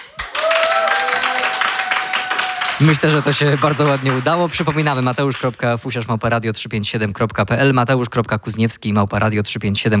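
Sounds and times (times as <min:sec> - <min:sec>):
spontaneous applause in a radio studio: 0:00.0 - 0:05.6
speech: 0:02.8 - 0:09.9.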